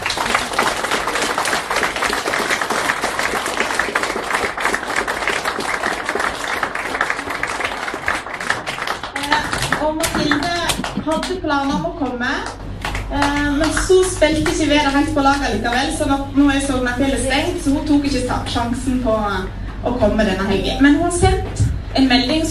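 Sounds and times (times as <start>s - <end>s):
audience applause: 0.0s - 11.4s
speech: 11.2s - 22.4s.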